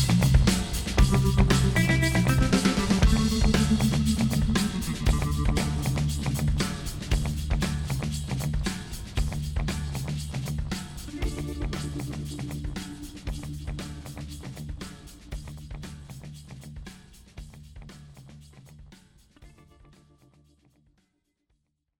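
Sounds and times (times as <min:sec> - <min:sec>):
instrumental music: 0:00.0 - 0:17.3.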